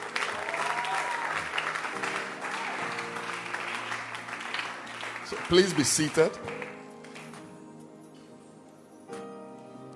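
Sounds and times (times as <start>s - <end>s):
audience applause: 0.0s - 7.4s
speech: 5.3s - 6.6s.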